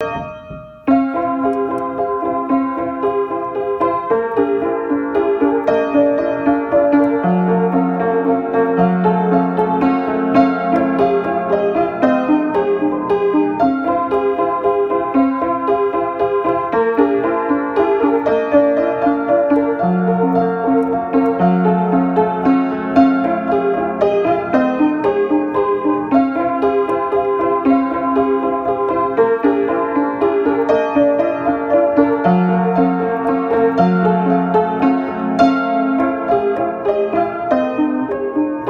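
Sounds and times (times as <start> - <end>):
old out-of-tune piano: 0.0 - 38.6.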